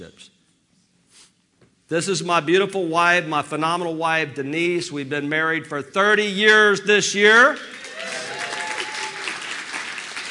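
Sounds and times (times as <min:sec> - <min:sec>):
speech: 0:01.9 - 0:07.8
audience hand clapping: 0:07.3 - 0:10.2.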